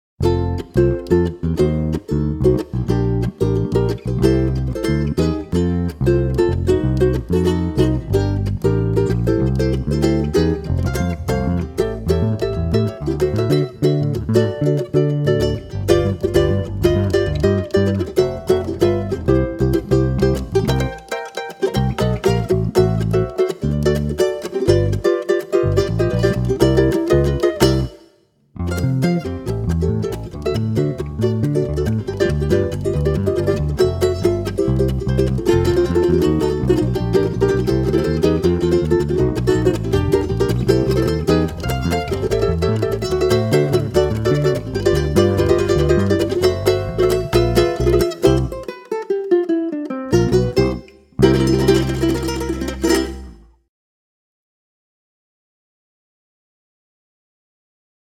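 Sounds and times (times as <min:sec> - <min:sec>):
ragtime music: 0:00.2 - 0:53.4.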